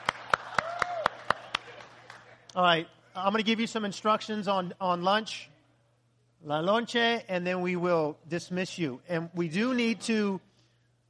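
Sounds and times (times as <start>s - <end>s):
audience applauding: 0.0s - 2.4s
speech: 2.6s - 5.5s, 6.4s - 10.5s.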